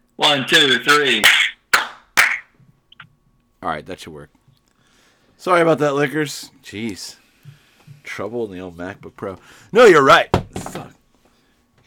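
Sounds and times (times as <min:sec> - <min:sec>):
sharp hand claps for audio sync: 0:00.2 - 0:02.5
speech: 0:00.3 - 0:01.4, 0:03.6 - 0:04.4, 0:05.4 - 0:11.0.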